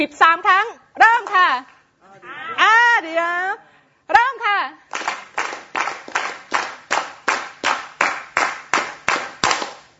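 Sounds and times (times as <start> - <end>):
speech: 0.0 - 1.8, 2.5 - 4.8
audience clapping in unison in a steady rhythm: 4.9 - 9.9.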